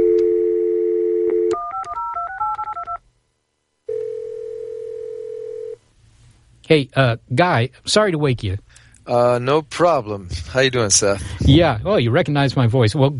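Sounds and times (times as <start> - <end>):
telephone ringing: 0.0 - 3.0, 3.9 - 5.8
speech: 6.7 - 13.1.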